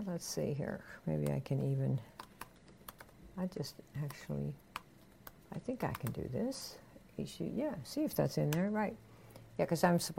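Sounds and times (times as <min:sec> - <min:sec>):
speech: 0:00.0 - 0:02.3, 0:03.4 - 0:04.6, 0:05.5 - 0:10.1
computer keyboard typing a web address: 0:02.1 - 0:03.2, 0:03.9 - 0:06.4.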